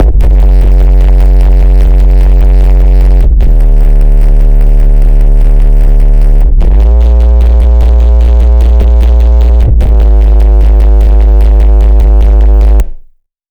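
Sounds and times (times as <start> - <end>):
distorted bass chord progression: 0.0 - 13.1.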